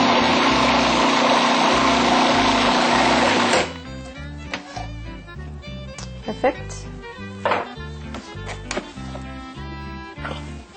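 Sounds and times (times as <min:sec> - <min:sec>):
blender whirring as it blends a tofu mixture: 0:00.0 - 0:03.8
speech: 0:06.4 - 0:06.8.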